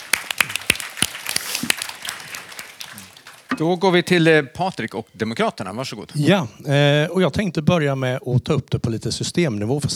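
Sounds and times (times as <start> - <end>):
audience applause: 0.0 - 4.2
speech: 3.6 - 9.9.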